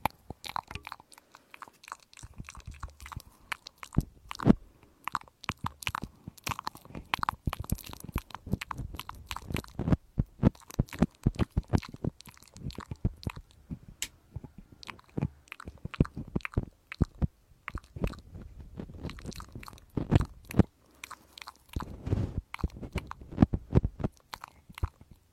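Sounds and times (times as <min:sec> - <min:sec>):
ear cleaning crackles, squishes and scratchy clicks: 0:00.0 - 0:25.3.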